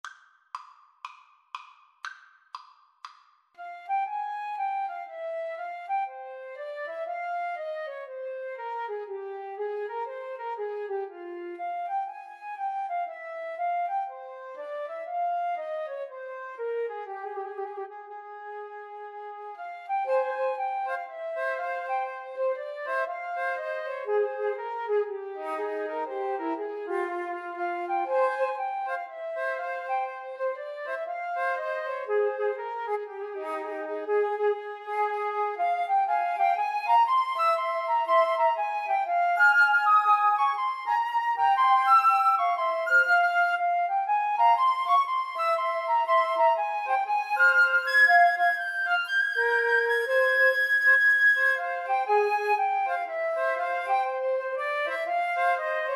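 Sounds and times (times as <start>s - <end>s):
flute trio playing a baroque bourree: 3.6s - 55.9s.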